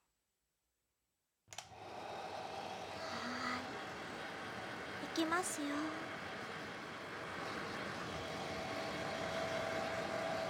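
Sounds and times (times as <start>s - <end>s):
hair dryer drying hair: 1.6s - 5.0s, 5.6s - 10.4s
speech: 5.2s - 6.1s.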